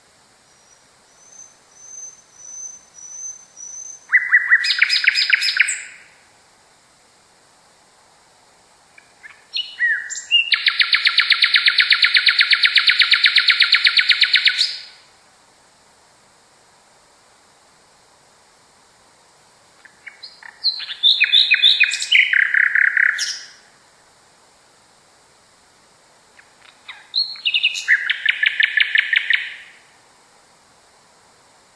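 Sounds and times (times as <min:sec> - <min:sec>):
nightingale singing: 0:00.0 - 0:06.2, 0:08.9 - 0:15.0, 0:19.7 - 0:23.7, 0:26.3 - 0:29.9.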